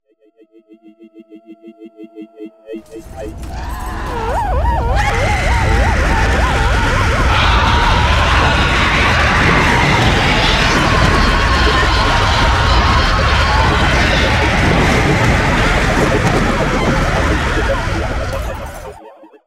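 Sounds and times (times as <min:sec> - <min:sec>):
laughter: 0:02.8 - 0:19.0
person screaming: 0:03.0 - 0:15.5.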